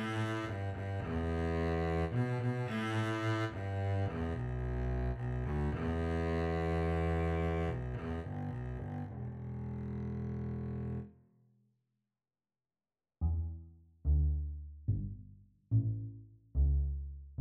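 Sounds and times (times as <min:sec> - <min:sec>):
cello: 0:00.0 - 0:11.1
double bass: 0:00.0 - 0:11.1, 0:13.2 - 0:17.3.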